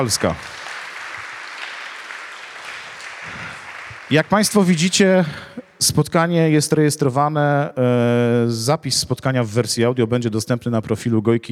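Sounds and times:
speech: 0:00.0 - 0:00.7, 0:04.1 - 0:11.4
audience applause: 0:00.0 - 0:05.0.

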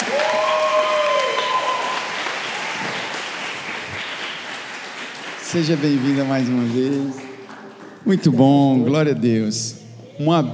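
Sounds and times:
audience applause: 0:00.0 - 0:08.4
speech: 0:05.5 - 0:07.3, 0:08.0 - 0:10.5.

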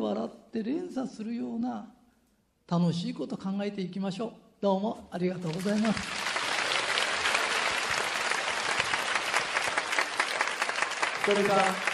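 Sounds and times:
speech: 0:00.3 - 0:02.0, 0:02.7 - 0:06.2, 0:11.2 - 0:11.9
audience applause: 0:05.5 - 0:11.9.

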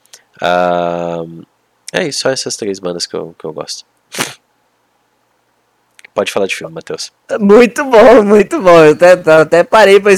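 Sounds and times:
speech: 0:00.4 - 0:04.3, 0:06.2 - 0:10.1
person sneezing: 0:04.1 - 0:04.4.

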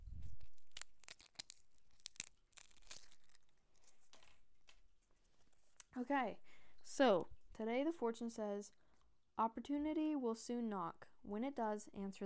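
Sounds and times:
small plastic wrapper of an individually wrapped fortune tearing: 0:00.1 - 0:05.9
speech: 0:06.0 - 0:08.8, 0:09.4 - 0:12.2.

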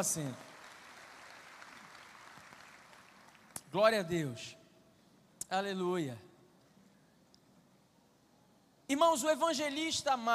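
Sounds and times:
speech: 0:00.0 - 0:00.5, 0:03.7 - 0:04.6, 0:05.5 - 0:06.3, 0:08.9 - 0:10.3
audience applause: 0:00.0 - 0:03.6.

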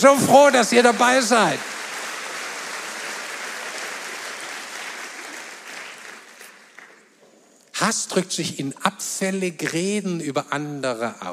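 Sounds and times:
speech: 0:00.0 - 0:01.7, 0:07.8 - 0:11.3
audience applause: 0:00.0 - 0:07.1.

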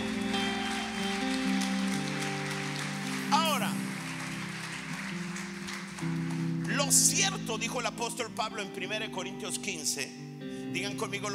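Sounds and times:
audience applause: 0:00.0 - 0:07.5
speech: 0:06.9 - 0:11.3.

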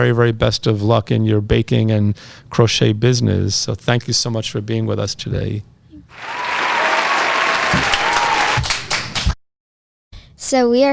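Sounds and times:
speech: 0:00.0 - 0:06.4, 0:10.4 - 0:10.9
audience applause: 0:06.1 - 0:09.4.

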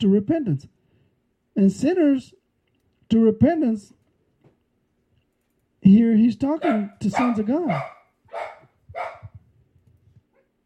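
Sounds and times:
speech: 0:00.0 - 0:00.8, 0:01.6 - 0:02.4, 0:03.1 - 0:04.0, 0:05.8 - 0:09.1
dog barking indoors: 0:06.6 - 0:09.4.

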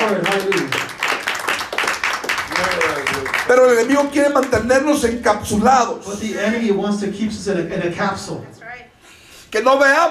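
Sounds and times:
audience applause: 0:00.0 - 0:04.6
speech: 0:00.1 - 0:00.8, 0:03.5 - 0:08.8, 0:09.5 - 0:10.0.

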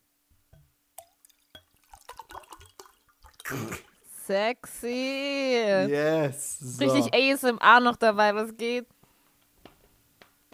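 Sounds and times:
tonic water being poured into a glass: 0:01.0 - 0:04.1
tonic water fizzing: 0:01.0 - 0:04.1
speech: 0:03.5 - 0:09.0.

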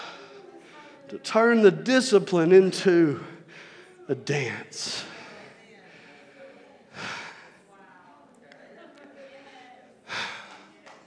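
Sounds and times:
heavy breathing from an out-of-breath speaker during a sermon: 0:00.0 - 0:01.1, 0:03.0 - 0:07.8, 0:10.0 - 0:11.0
low murmur: 0:00.0 - 0:11.0
speech: 0:01.1 - 0:03.3, 0:04.1 - 0:05.1.

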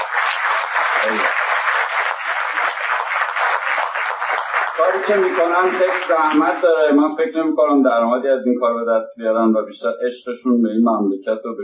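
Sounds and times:
audience applause at a web and mobile festival in Shiraz: 0:00.0 - 0:06.8
speech: 0:01.0 - 0:01.4, 0:04.8 - 0:11.6.

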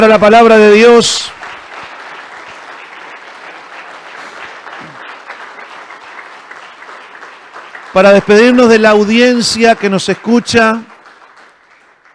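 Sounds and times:
speech: 0:00.0 - 0:01.4, 0:07.9 - 0:10.9
audience applause: 0:00.0 - 0:12.1.

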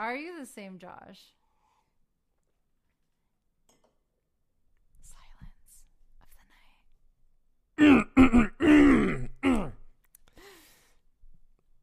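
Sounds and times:
speech: 0:00.0 - 0:01.4
throat clearing: 0:07.8 - 0:09.9.

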